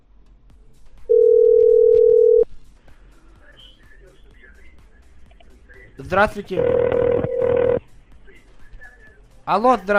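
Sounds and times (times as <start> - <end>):
telephone dial tone of an outgoing call: 1.1 - 2.4, 6.6 - 7.8
speech: 6.0 - 6.9, 9.5 - 9.9.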